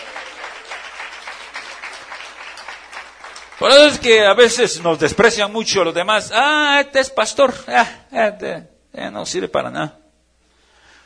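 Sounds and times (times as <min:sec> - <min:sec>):
church congregation clapping in praise: 0:00.0 - 0:05.5
speech: 0:03.6 - 0:10.0.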